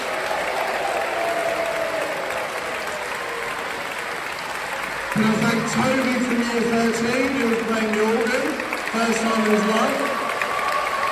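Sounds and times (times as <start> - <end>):
rising whoop: 0.0 - 3.7, 10.1 - 11.0
cheering: 0.0 - 11.0
crowd clapping: 0.0 - 11.0
speech: 5.2 - 10.1.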